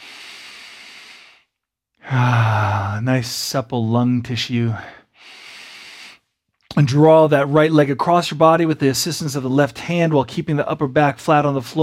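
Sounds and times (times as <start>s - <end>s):
long airy exhale during a guided deep-breathing exercise: 0.0s - 1.5s, 5.0s - 6.2s
speech: 2.1s - 5.4s, 6.8s - 11.8s.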